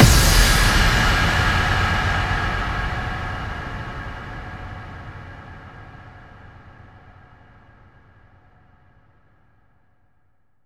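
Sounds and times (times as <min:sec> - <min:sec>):
bass drum FX kicks: 0:00.0 - 0:04.8.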